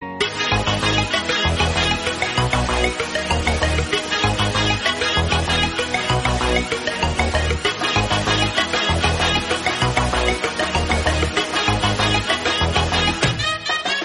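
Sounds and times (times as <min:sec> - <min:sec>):
cute love background music ringtone: 0:00.0 - 0:14.0.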